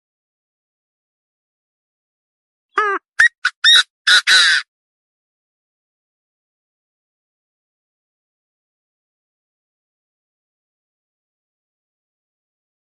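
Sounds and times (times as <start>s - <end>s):
partridge calling: 2.8s - 4.6s.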